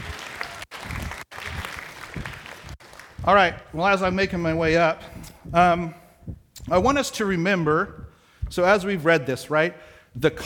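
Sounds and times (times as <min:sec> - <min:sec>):
audience applause: 0:00.0 - 0:03.2
speech: 0:03.2 - 0:06.0, 0:06.7 - 0:10.4.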